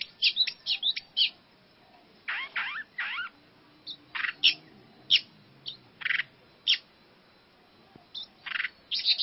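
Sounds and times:
long-tailed shrike singing mixed mimicked phrases: 0:00.0 - 0:01.4, 0:02.3 - 0:06.9, 0:08.1 - 0:09.2.

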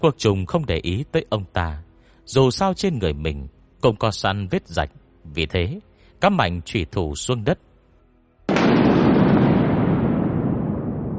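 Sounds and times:
speech: 0:00.0 - 0:07.7
loud explosion boom with rumbling roar: 0:08.5 - 0:11.1.

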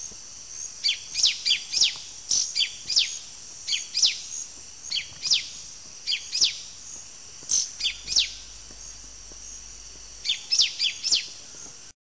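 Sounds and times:
yellow-green grosbeak nominate subspecies canadensis singing: 0:00.8 - 0:06.7, 0:07.5 - 0:08.4, 0:10.2 - 0:11.7.

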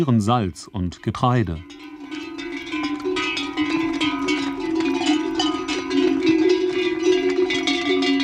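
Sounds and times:
speech: 0:00.0 - 0:02.4
bells on necks of mule caravan clanking and jingling: 0:00.0 - 0:08.2.

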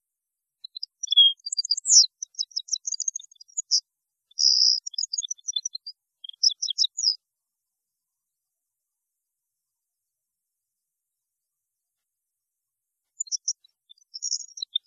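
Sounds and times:
European goldfinch song: 0:00.6 - 0:07.2, 0:13.1 - 0:14.8.

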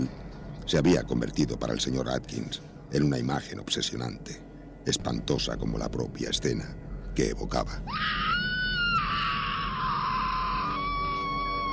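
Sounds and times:
speech: 0:00.0 - 0:08.4
woman screaming in terror on opening a hotel room wardrobe: 0:07.9 - 0:11.7.

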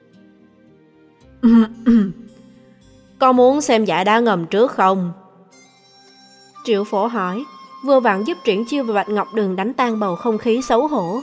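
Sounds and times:
speech: 0:01.4 - 0:02.0, 0:03.2 - 0:05.2, 0:06.6 - 0:11.2
person coughing: 0:01.4 - 0:02.3.

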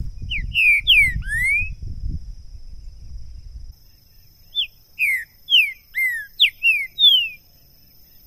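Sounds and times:
green-winged saltator whistled song: 0:00.2 - 0:01.8, 0:04.5 - 0:07.4.

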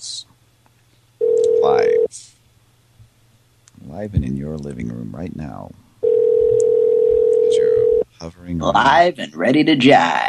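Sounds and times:
telephone line ringing tone: 0:01.2 - 0:02.1, 0:06.0 - 0:08.0
speech: 0:04.0 - 0:05.8, 0:08.2 - 0:10.2.

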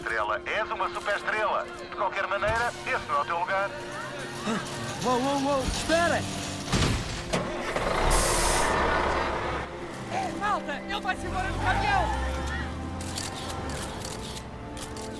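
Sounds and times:
speech: 0:00.3 - 0:06.4, 0:10.5 - 0:12.3
truck engine starting and pulling away: 0:04.2 - 0:14.8.

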